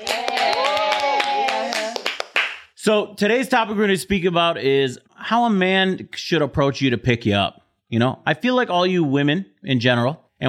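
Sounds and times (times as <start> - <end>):
live audience in Chicago cheering: 0.0 - 2.6
live audience in Chicago clapping: 0.0 - 2.7
speech: 2.8 - 10.4.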